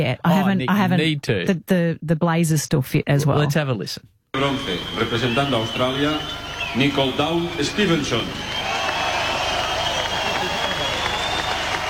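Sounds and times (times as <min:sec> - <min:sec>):
speech: 0:00.0 - 0:08.6
outdoor crowd applauding at medal ceremony: 0:04.4 - 0:11.8.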